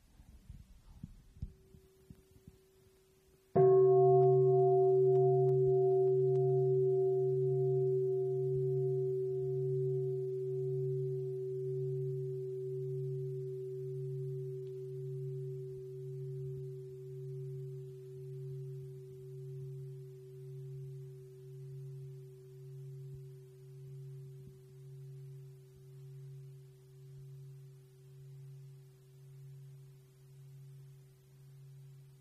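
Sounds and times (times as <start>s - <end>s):
faint low rumble: 0.0s - 32.1s
deep bell ringing for mindfulness practice: 3.6s - 21.1s.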